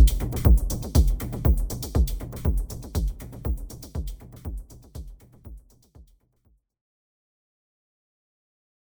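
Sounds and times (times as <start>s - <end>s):
drum: 0.0s - 6.2s.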